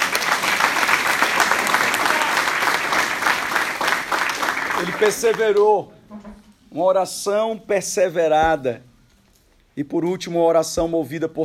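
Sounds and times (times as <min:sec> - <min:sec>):
audience applause: 0:00.0 - 0:05.8
speech: 0:04.9 - 0:08.9, 0:09.8 - 0:11.4.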